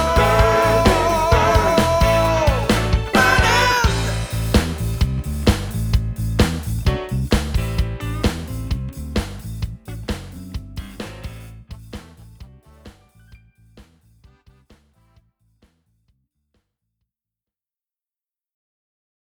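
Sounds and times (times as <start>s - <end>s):
disco music: 0.0s - 13.4s.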